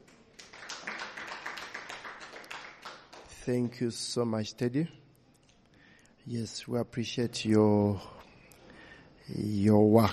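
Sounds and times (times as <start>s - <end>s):
crowd hand clapping: 0.0s - 3.8s
speech: 3.4s - 5.0s, 6.3s - 8.2s, 9.3s - 10.1s.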